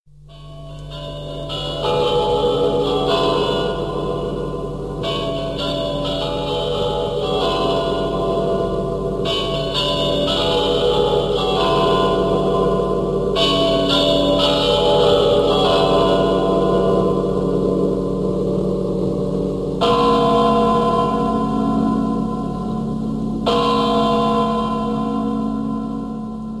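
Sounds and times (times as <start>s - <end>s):
Kremlin bells ringing: 0.3s - 26.5s.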